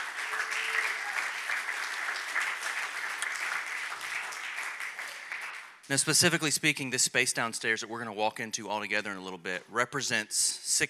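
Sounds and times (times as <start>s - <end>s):
audience clapping: 0.0s - 6.1s
speech: 5.9s - 10.8s.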